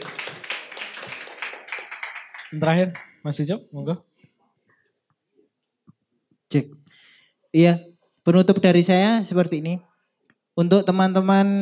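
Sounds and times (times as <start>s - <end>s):
audience clapping: 0.0s - 3.2s
speech: 2.5s - 4.1s, 6.5s - 6.8s, 7.5s - 9.9s, 10.6s - 11.6s.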